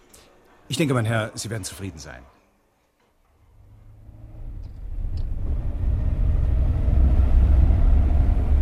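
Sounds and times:
speech: 0.7 - 2.4
car engine rumble on a test drive: 3.6 - 8.6.

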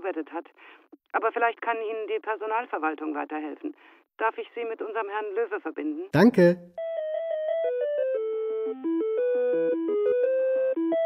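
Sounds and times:
speech: 0.1 - 6.8, 8.7 - 9.1
telephone hold music of a classical piece: 7.7 - 11.0.

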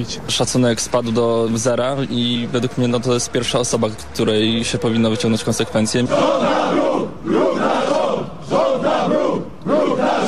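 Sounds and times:
speech: 0.0 - 7.4
protest crowd chanting at a picket: 5.9 - 10.2.

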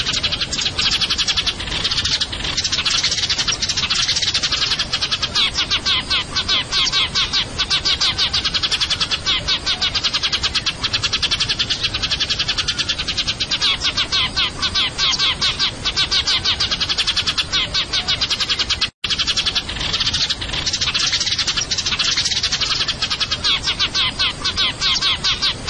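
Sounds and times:
Eurasian tree sparrow chirping rapidly: 0.0 - 25.6.

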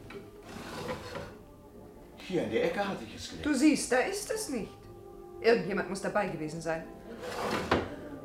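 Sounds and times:
top drawer of a secretary desk sliding open: 0.5 - 1.3, 7.2 - 7.9
speech: 2.3 - 4.8, 5.4 - 7.6.

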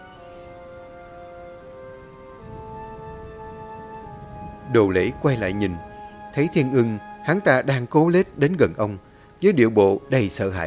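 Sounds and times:
heavy rain falling on a roof: 0.0 - 6.3
speech: 4.7 - 10.6.

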